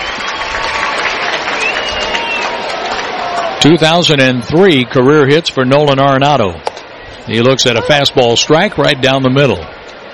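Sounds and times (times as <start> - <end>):
baseball fans applauding: 0.0 - 5.2
speech: 3.6 - 9.7.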